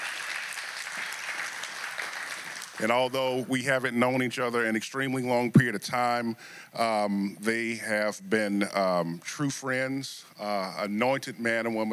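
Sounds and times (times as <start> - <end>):
audience clapping: 0.0 - 3.2
speech: 2.8 - 11.9.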